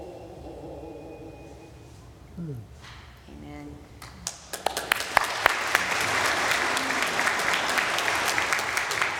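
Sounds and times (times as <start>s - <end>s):
speech: 2.5s - 3.0s
audience applause: 4.5s - 9.1s.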